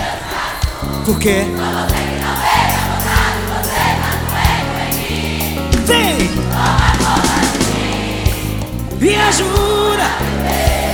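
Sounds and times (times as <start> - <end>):
concert crowd shouting in response: 0.0 - 8.4
loud music with a heavy pulsing bass: 0.8 - 10.9
speech: 1.1 - 2.5, 9.1 - 10.7.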